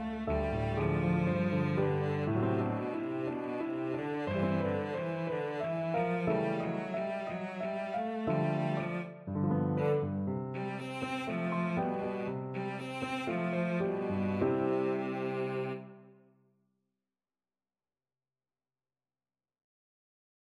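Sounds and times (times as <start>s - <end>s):
violoncello: 0.0s - 16.2s.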